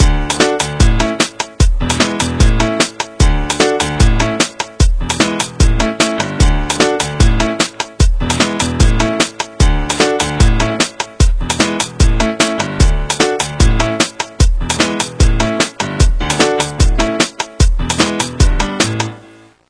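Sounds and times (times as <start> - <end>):
piano: 0.0 - 19.6.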